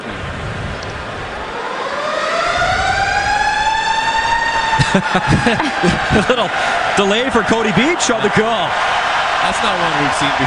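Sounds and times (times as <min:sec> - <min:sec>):
arena siren blaring: 0:01.0 - 0:10.4
laughter: 0:04.8 - 0:08.6
speech: 0:05.0 - 0:10.4.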